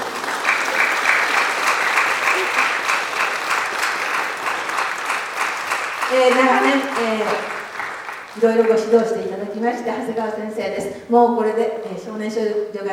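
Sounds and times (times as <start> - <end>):
audience applause from a sizable crowd: 0.0 - 8.9
speech: 6.1 - 7.5, 8.4 - 12.9.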